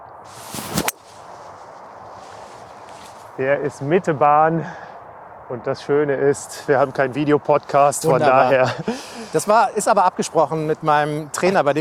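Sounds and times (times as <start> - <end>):
golf club striking ball on a first tee shot: 0.3 - 3.4
speech: 3.4 - 4.8, 5.5 - 11.7
laughter: 6.8 - 10.8.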